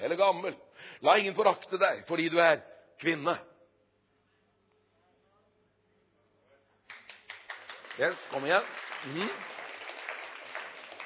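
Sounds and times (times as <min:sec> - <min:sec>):
speech: 0:00.2 - 0:03.5, 0:08.0 - 0:09.5
audience clapping: 0:06.8 - 0:11.0.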